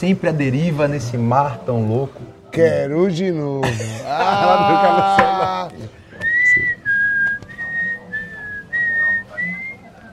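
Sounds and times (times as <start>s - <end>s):
speech: 0.0s - 6.0s
laughter: 3.6s - 6.0s
person whistling: 6.2s - 9.8s.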